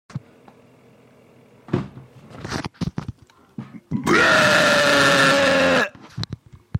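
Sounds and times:
person burping: 0:03.8 - 0:06.0.

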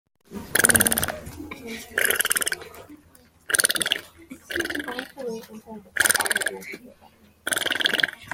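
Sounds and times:
farting: 0:00.5 - 0:01.2, 0:02.0 - 0:02.7, 0:03.5 - 0:05.1, 0:06.0 - 0:06.5, 0:07.5 - 0:08.3.

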